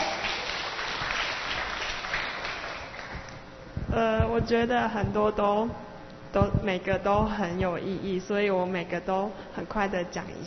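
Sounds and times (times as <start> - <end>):
audience applause: 0.0 - 3.3
speech: 4.0 - 10.4.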